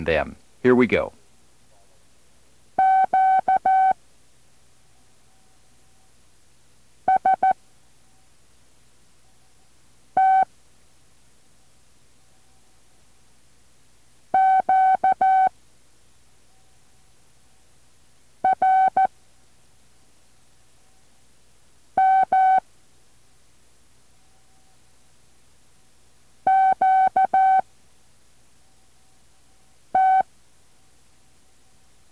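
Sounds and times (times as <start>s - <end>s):
speech: 0.0s - 1.2s
Morse code Q signals beeping: 2.8s - 4.0s, 7.1s - 7.6s, 10.2s - 10.5s, 14.4s - 15.5s, 18.4s - 19.1s, 22.0s - 22.6s, 26.5s - 27.6s, 30.0s - 30.2s.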